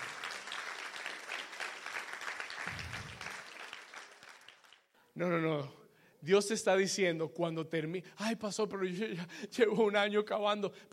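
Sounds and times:
audience loud applause: 0:00.0 - 0:04.8
speech: 0:05.2 - 0:10.9.

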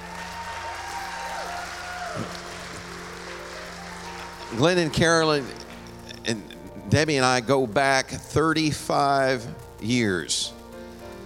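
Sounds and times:
church congregation applauding to welcome guest pastors: 0:00.0 - 0:06.3
speech: 0:04.5 - 0:05.6, 0:06.2 - 0:10.6.

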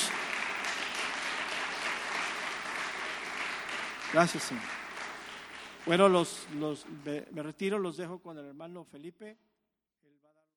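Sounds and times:
crowd applause: 0:00.0 - 0:07.2
speech: 0:04.1 - 0:04.8, 0:05.8 - 0:09.5.

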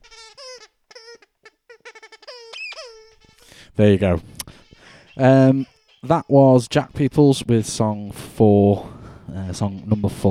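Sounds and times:
dog playing with squeaky toy snake: 0:00.0 - 0:03.6, 0:04.5 - 0:06.7
speech: 0:03.8 - 0:04.4, 0:05.2 - 0:10.3.

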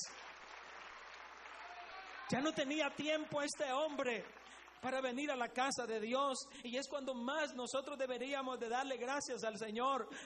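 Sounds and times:
audience applauding: 0:00.0 - 0:05.2
speech: 0:02.3 - 0:10.2.

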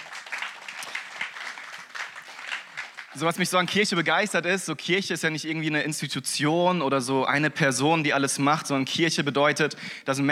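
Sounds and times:
crowd applauding: 0:00.0 - 0:03.8
speech: 0:03.1 - 0:10.3.

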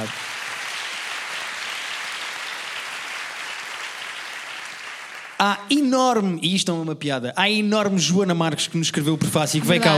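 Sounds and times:
audience applause: 0:00.0 - 0:05.4
speech: 0:05.4 - 0:09.9.

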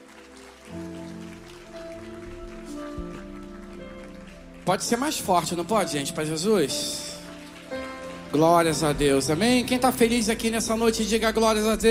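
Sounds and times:
audience applauding: 0:00.0 - 0:11.8
sustained musical tones: 0:00.0 - 0:11.8
speech: 0:04.7 - 0:07.1, 0:08.3 - 0:11.8.

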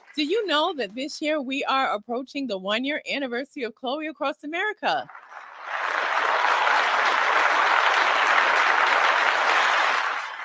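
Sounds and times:
speech: 0:00.2 - 0:05.2
applause sound effect: 0:05.1 - 0:10.4.

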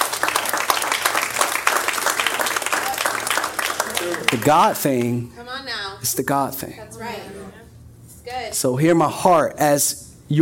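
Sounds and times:
audience applause: 0:00.0 - 0:05.2
speech: 0:04.3 - 0:05.4, 0:06.0 - 0:07.6, 0:08.2 - 0:10.3.

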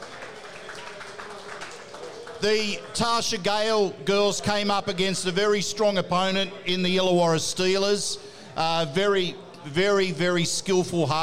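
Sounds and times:
audience applause: 0:00.0 - 0:03.3
speech: 0:02.4 - 0:11.2.

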